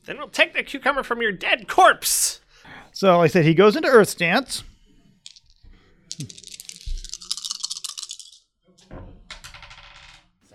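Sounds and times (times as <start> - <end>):
speech: 0.0 - 2.4, 3.0 - 4.7, 6.2 - 6.4
dice rattling and clattering: 5.2 - 8.4.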